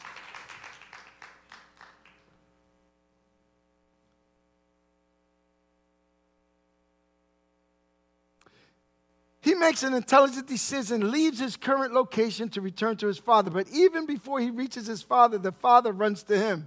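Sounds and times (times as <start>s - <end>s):
audience applause: 0.0s - 2.3s
speech: 9.6s - 16.6s.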